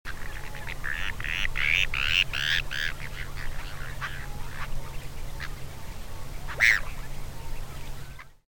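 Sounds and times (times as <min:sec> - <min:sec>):
Bonaparte's gull calls: 0:00.1 - 0:04.8, 0:06.4 - 0:07.1
low steady hum: 0:00.1 - 0:08.4.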